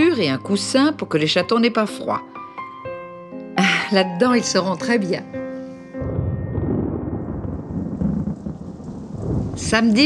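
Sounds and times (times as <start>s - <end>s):
speech: 0.2s - 2.4s, 3.9s - 5.4s, 9.6s - 10.0s
thunder: 6.0s - 10.0s.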